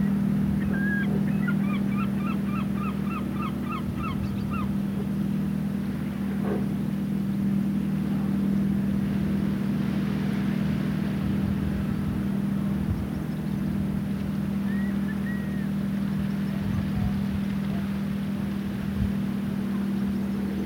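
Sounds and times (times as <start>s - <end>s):
gulls calling on the south Gower coast: 0.0s - 7.6s, 12.5s - 20.6s
tractor engine baling hay on a Gower headland: 0.0s - 20.6s.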